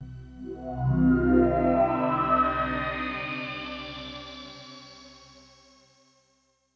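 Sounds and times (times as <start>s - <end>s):
power pad: 0.0s - 5.0s.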